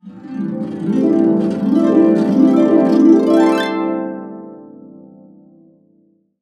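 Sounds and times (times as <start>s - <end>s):
harp cascade up and down in C: 0.2s - 4.1s.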